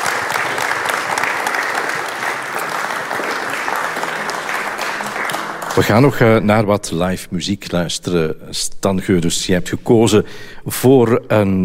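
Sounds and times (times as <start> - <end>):
audience applause: 0.0 - 6.5
speech: 5.8 - 11.6.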